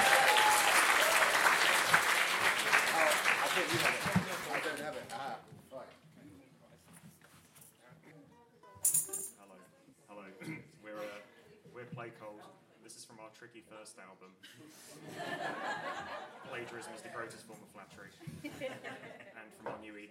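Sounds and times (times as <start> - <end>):
audience applause: 0.0 - 5.3
speech: 12.9 - 20.0
laughter: 14.7 - 17.3, 18.2 - 19.6.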